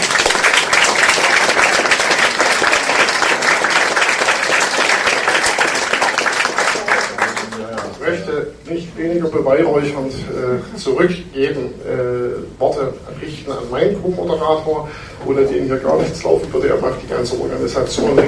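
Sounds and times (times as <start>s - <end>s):
audience applause: 0.0s - 8.1s
speech: 8.8s - 18.2s.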